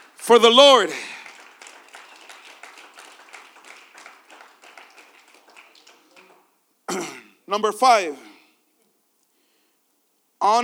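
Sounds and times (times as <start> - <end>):
crowd clapping: 0.0 - 6.6
speech: 0.3 - 1.2, 7.5 - 8.3, 10.4 - 10.6.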